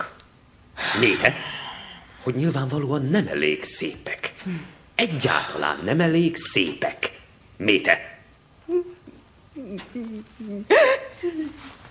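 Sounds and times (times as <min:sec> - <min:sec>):
speech: 0:01.0 - 0:01.5, 0:02.2 - 0:08.1, 0:09.8 - 0:11.8
person crying: 0:08.7 - 0:11.8.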